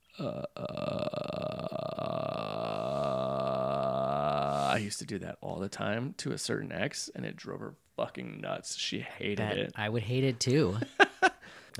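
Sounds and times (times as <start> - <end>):
voice imitating a croaking sound: 0.0 - 4.8
speech: 0.2 - 0.5, 4.8 - 11.0.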